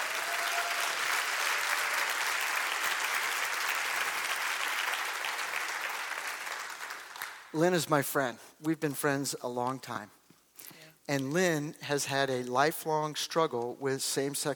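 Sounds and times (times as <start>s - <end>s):
audience applause: 0.0s - 7.5s
speech: 7.5s - 14.5s.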